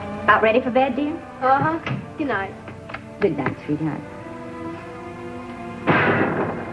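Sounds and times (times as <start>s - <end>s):
speech: 0.3s - 2.6s, 3.2s - 4.1s
gunshot at night: 5.9s - 6.7s.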